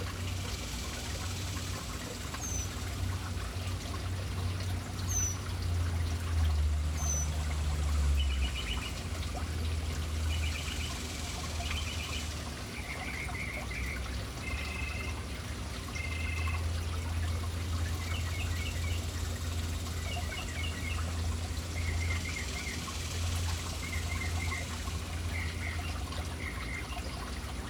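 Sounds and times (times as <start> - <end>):
fountain water splashing: 0.0 - 27.6
birds chirping: 2.3 - 3.0, 5.0 - 5.5, 6.9 - 9.2, 10.1 - 15.2, 15.9 - 27.1.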